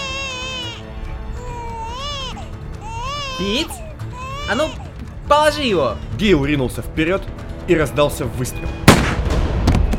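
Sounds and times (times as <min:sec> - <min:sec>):
baby wailing: 0:00.0 - 0:05.2
speech: 0:03.4 - 0:03.8, 0:04.5 - 0:08.9.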